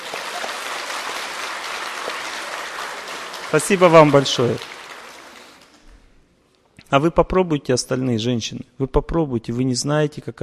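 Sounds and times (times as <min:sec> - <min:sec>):
audience applause: 0:00.0 - 0:05.9
speech: 0:03.5 - 0:04.7, 0:06.9 - 0:10.4.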